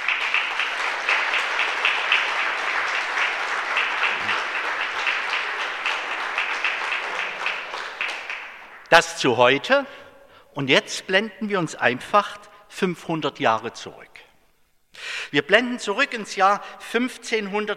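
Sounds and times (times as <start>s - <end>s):
audience applause: 0.0s - 9.0s
speech: 8.9s - 10.0s, 10.6s - 14.1s, 15.3s - 17.7s.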